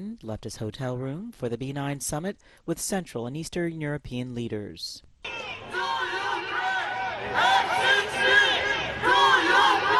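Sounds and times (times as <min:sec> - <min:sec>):
speech: 0:00.0 - 0:05.9
protesters shouting along a motorcade route: 0:05.3 - 0:09.9.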